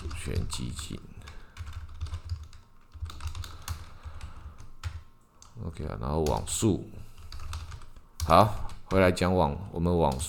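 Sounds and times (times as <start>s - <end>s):
typing on computer keyboard: 0.0s - 5.6s, 7.2s - 9.1s
speech: 0.3s - 1.2s, 5.6s - 7.0s, 8.2s - 10.2s.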